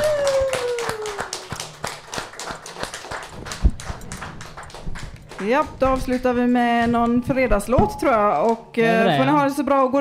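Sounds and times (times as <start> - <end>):
audience applauding: 0.0 - 6.3
speech: 5.4 - 9.9.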